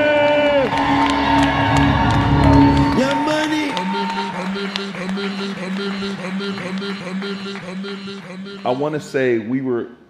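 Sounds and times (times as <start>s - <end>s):
crowd cheering and whooping: 0.0s - 5.4s
clapping: 0.0s - 8.3s
laughter: 2.5s - 9.0s
speech: 8.7s - 10.0s.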